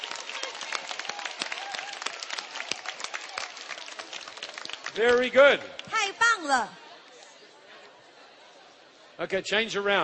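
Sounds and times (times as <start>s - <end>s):
group clapping: 0.0s - 6.6s
speech: 5.0s - 6.8s, 9.2s - 10.0s.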